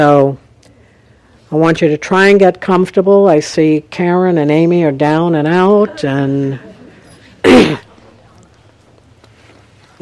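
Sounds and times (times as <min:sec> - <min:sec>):
speech: 0:00.0 - 0:00.4, 0:01.5 - 0:06.7
person coughing: 0:07.4 - 0:08.0.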